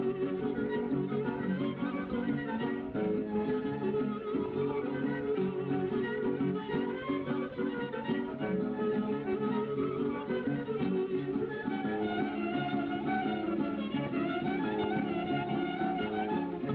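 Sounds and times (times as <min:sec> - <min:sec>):
folk dance music: 0:00.0 - 0:16.7.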